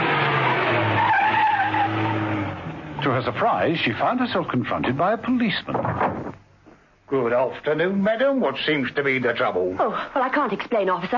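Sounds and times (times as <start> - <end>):
car tyres squealing as the car skids to a stop: 0.8 - 3.1
speech: 3.2 - 5.9, 7.1 - 11.1.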